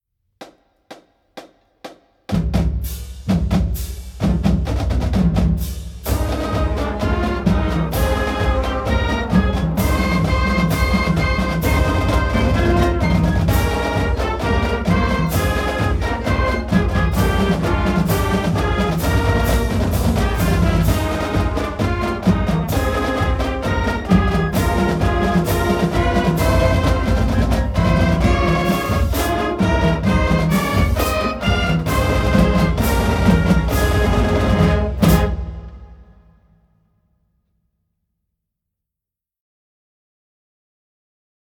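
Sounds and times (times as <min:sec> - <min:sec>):
drum roll: 0:00.5 - 0:36.6.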